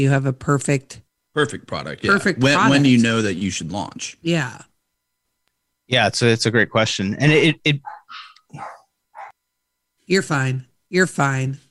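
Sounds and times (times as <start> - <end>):
speech: 0.0 - 4.7, 5.9 - 8.8, 10.1 - 11.6
dogs barking in an office: 7.8 - 9.4.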